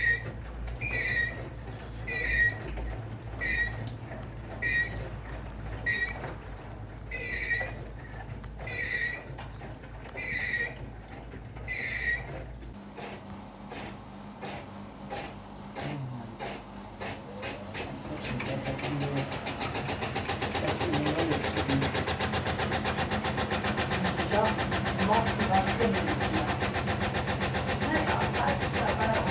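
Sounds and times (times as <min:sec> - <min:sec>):
washer-dryer spin cycle: 0:00.0 - 0:29.2
person speaking: 0:17.8 - 0:19.5, 0:20.5 - 0:22.1, 0:23.9 - 0:26.7, 0:27.8 - 0:29.2.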